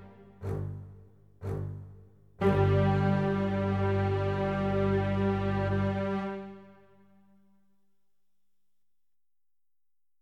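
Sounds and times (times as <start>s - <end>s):
dramatic music: 0.0s - 6.6s.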